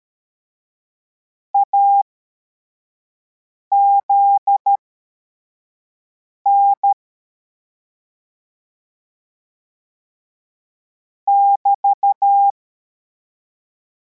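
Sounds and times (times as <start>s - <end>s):
CW morse code beeps: 3.7s - 4.8s, 6.5s - 7.0s, 11.3s - 12.5s.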